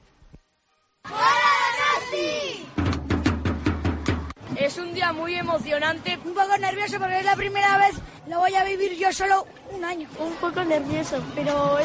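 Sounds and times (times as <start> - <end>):
crowd of young voices shouting a chant: 1.0 - 2.8
sharp drumbeats: 2.7 - 4.4
speech: 4.7 - 11.8.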